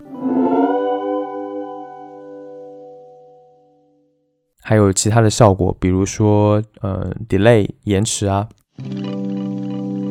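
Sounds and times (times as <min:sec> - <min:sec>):
reverse reverb effect: 0:00.0 - 0:03.7
speech: 0:04.7 - 0:09.1.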